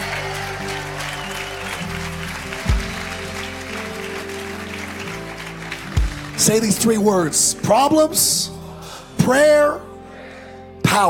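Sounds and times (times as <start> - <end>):
crowd clapping: 0.0 - 7.6
sustained keyboard chords: 0.0 - 11.0
speech: 6.4 - 8.6, 9.3 - 9.9.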